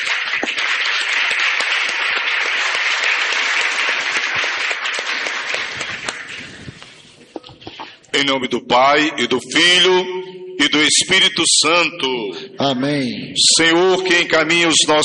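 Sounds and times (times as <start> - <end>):
audience applauding: 0.0 - 7.0
speech: 8.2 - 15.0.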